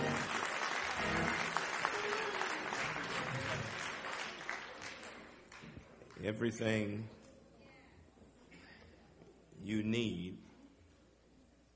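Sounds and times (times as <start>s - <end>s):
audience hand clapping: 0.0s - 6.3s
speech: 6.2s - 7.2s, 9.7s - 10.4s.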